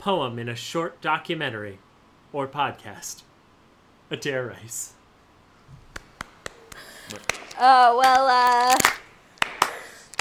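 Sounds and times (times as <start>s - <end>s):
speech: 0.0s - 3.3s, 4.1s - 5.0s, 7.1s - 9.0s
slow clapping: 5.8s - 10.1s.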